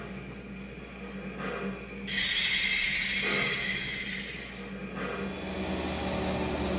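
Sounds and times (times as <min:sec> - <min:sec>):
484 FEF train: 0:01.4 - 0:06.7.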